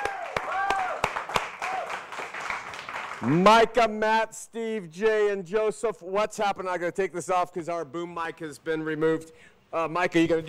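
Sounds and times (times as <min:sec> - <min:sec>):
round of applause: 0:00.0 - 0:03.4
speech: 0:03.2 - 0:10.4.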